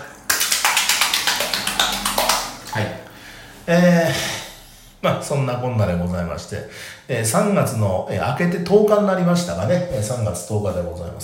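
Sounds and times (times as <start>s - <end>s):
hand slapping bath water surface: 0.0s - 3.0s
speech: 2.8s - 3.1s, 3.7s - 4.4s, 5.0s - 11.2s.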